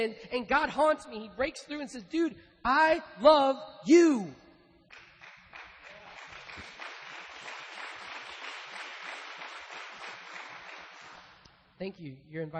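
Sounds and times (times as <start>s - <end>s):
speech: 0.0s - 4.4s, 11.8s - 12.5s
audience clapping: 4.9s - 11.6s.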